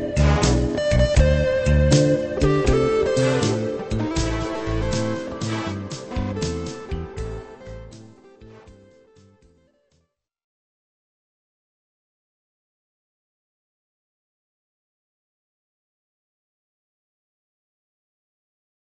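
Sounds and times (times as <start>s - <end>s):
blues music: 0.0s - 9.8s.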